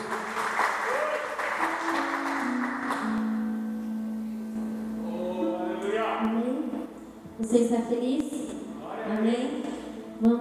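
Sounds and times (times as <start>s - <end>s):
audience applause: 0.0s - 3.1s
sustained keyboard chords: 1.5s - 10.3s
speech: 7.5s - 8.4s.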